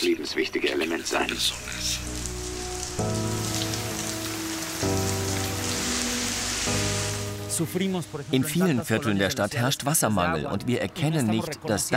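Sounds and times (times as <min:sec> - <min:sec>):
speech: 0:00.0 - 0:02.2, 0:03.0 - 0:03.6, 0:07.6 - 0:11.9
steady rain: 0:00.8 - 0:09.4.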